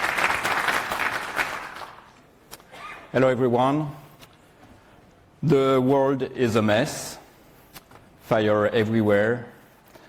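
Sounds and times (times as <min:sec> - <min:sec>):
audience applause welcoming a conference speaker: 0:00.0 - 0:02.2
speech: 0:03.1 - 0:04.0, 0:05.4 - 0:07.2, 0:08.3 - 0:09.6.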